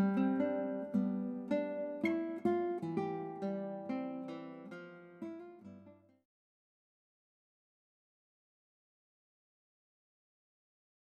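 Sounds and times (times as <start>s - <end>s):
guitar playing in a recital: 0.0s - 6.2s.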